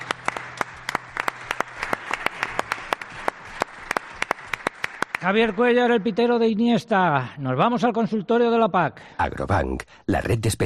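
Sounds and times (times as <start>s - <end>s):
crowd applause: 0.0s - 6.6s
speech: 5.2s - 10.6s.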